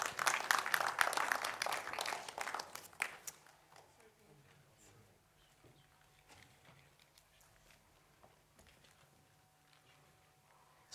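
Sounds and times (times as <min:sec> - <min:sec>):
crowd applause: 0:00.0 - 0:03.9.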